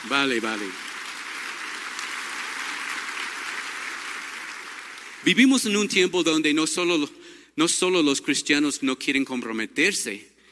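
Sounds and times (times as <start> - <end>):
speech: 0.0 - 0.9, 5.2 - 10.3
audience applause: 0.0 - 5.5.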